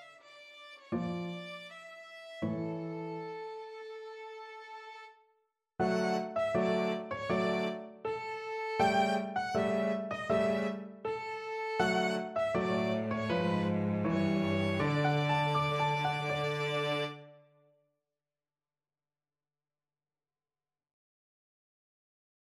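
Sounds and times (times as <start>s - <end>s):
cello: 0.0s - 5.2s, 5.8s - 17.4s
violin: 0.0s - 5.2s, 5.8s - 17.4s
piano: 0.8s - 3.8s, 5.8s - 17.4s.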